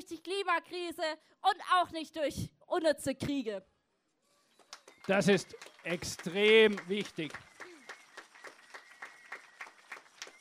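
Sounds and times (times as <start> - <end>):
speech: 0.0 - 3.7, 5.0 - 7.5
faint steady rhythmic audience clapping: 4.6 - 10.3.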